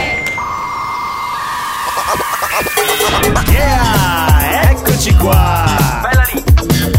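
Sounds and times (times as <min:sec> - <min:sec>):
crowd applauding and cheering: 0:00.2 - 0:06.8.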